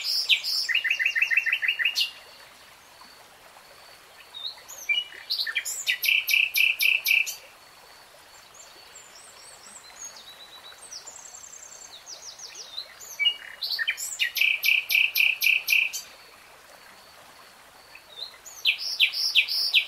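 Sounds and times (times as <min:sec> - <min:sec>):
nightingale song: 0:00.0 - 0:02.5, 0:04.2 - 0:07.5, 0:08.3 - 0:16.4, 0:17.9 - 0:19.8.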